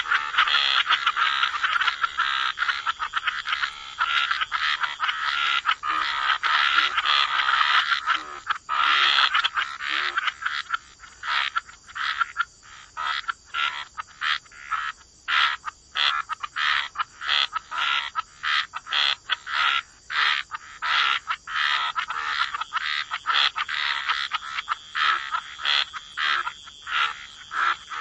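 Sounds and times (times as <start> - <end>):
chorus of frogs croaking: 0.0 - 27.9.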